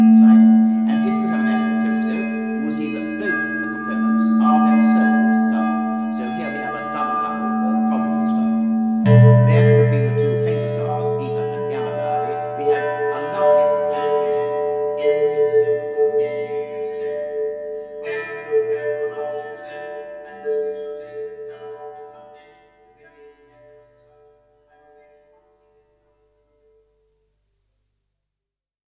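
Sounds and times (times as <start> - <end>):
big bell ringing: 0.0 - 22.1.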